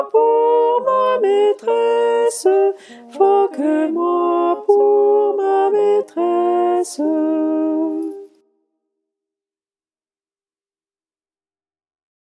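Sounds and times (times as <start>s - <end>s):
sopranos singing: 0.0s - 8.4s.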